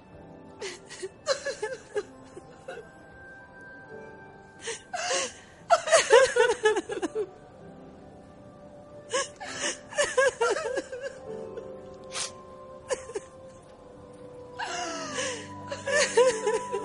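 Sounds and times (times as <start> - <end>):
two women crying in a Catalan radio play: 0.6 - 3.2, 4.6 - 7.6, 9.0 - 13.7, 14.5 - 16.8
laughter: 5.7 - 7.3, 9.9 - 11.2, 15.7 - 16.8.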